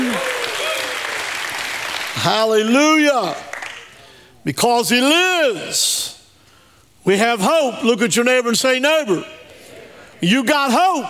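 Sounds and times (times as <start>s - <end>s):
rising-and-falling whoop: 0.0s - 1.2s
audience clapping: 0.0s - 4.2s
speech: 2.2s - 3.5s, 4.4s - 6.2s, 7.0s - 9.4s, 10.2s - 11.0s.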